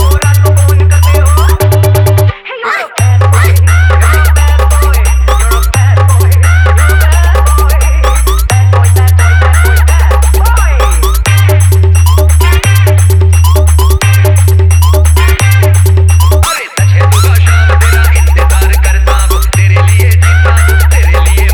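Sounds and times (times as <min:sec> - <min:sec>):
humming electronic dance music mix: 0:00.0 - 0:02.3, 0:03.0 - 0:21.5.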